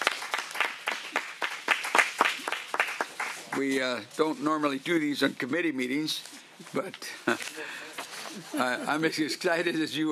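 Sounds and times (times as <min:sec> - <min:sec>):
round of applause: 0:00.0 - 0:03.7
speech: 0:03.6 - 0:07.8, 0:08.4 - 0:10.1.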